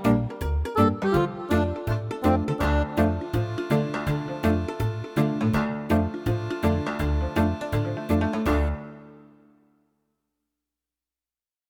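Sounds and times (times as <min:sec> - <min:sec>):
quirky funny western town music: 0:00.0 - 0:09.3.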